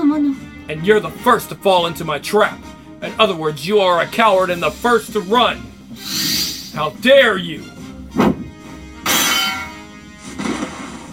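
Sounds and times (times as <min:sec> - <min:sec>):
speech: 0:00.7 - 0:06.2, 0:06.8 - 0:08.3
sword deflecting an attack: 0:09.1 - 0:09.9.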